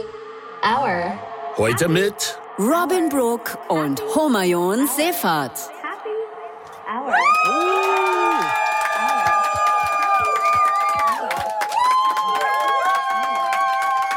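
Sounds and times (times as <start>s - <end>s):
speech: 0.0s - 5.8s
live audience cheering and clapping: 1.6s - 5.7s, 6.9s - 14.1s.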